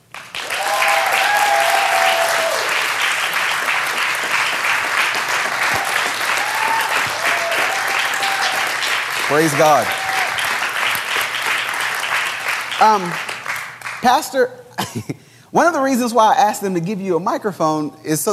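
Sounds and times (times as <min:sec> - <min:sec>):
church audience applauding a guest pastor from India: 0:00.0 - 0:14.0
speech: 0:09.4 - 0:10.0, 0:12.8 - 0:13.3, 0:14.0 - 0:18.3.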